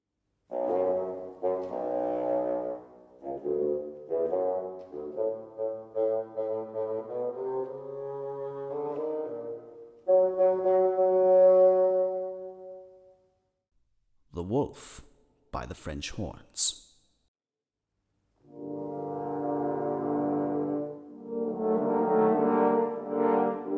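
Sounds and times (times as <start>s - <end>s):
solo bassoon melody: 0.5s - 13.2s, 18.4s - 23.7s
speech: 15.7s - 16.9s.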